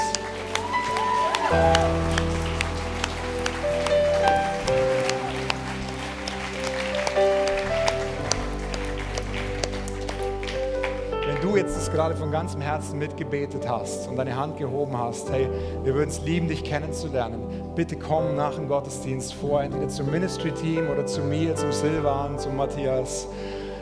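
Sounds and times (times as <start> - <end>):
audience applause: 0.0 - 12.2
sustained keyboard-style music with low bass chords: 0.0 - 23.8
speech: 1.5 - 2.2, 12.0 - 23.6.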